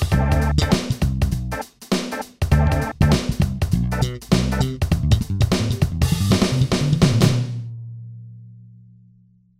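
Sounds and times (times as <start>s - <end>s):
funk backing track: 0.0s - 7.7s.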